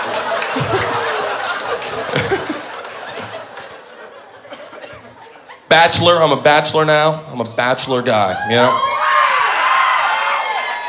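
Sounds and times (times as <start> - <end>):
audience cheering: 0.0 - 3.6, 8.3 - 10.8
audience applause: 0.0 - 4.0, 8.8 - 10.8
laughter: 0.0 - 5.7
speech: 5.8 - 8.9.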